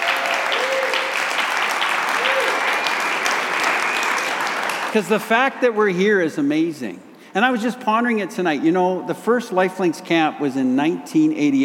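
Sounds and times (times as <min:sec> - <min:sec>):
audience applause: 0:00.0 - 0:05.0
speech: 0:04.9 - 0:11.6.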